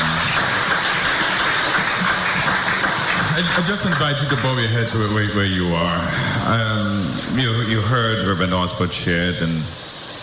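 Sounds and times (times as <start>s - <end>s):
audience applause: 0.0s - 4.8s
speech: 3.4s - 9.8s.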